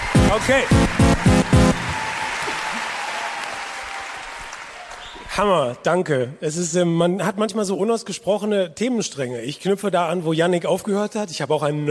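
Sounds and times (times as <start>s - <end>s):
audience applause: 0.0s - 5.2s
loud whoops and cheers: 0.0s - 5.2s
speech: 0.3s - 1.3s, 5.4s - 11.8s.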